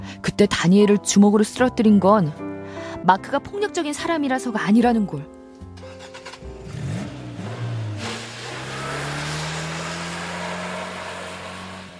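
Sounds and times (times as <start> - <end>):
speech: 0.1 - 5.4
car driving fast, engine revving: 5.8 - 11.9.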